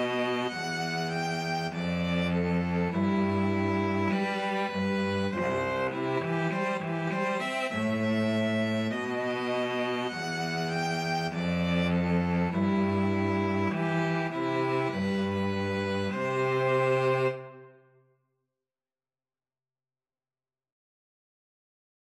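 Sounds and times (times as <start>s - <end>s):
two violins and cello playing a wedding march: 0.0s - 17.7s.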